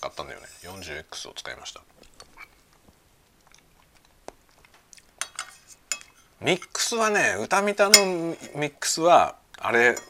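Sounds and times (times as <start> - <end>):
speech: 0.1 - 2.1, 6.4 - 10.0
wet chewing and slurping of spaghetti: 2.0 - 6.2
cutlery clinking against a dish: 5.2 - 6.8, 7.9 - 8.4, 9.9 - 10.0.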